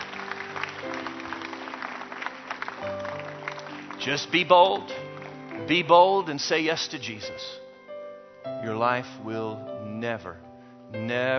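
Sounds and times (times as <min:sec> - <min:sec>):
audience hand clapping: 0:00.0 - 0:06.6
speech: 0:04.0 - 0:07.6, 0:08.6 - 0:11.3.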